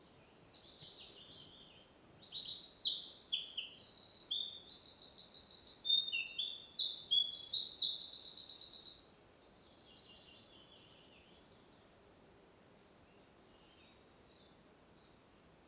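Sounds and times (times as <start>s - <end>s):
Eurasian wren song: 0.5s - 9.2s.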